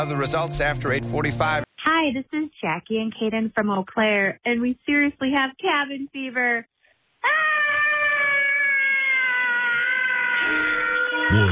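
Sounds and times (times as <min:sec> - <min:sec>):
speech: 0:00.0 - 0:08.2, 0:10.4 - 0:10.7, 0:11.3 - 0:11.5
woman and boy screaming together: 0:07.2 - 0:11.5.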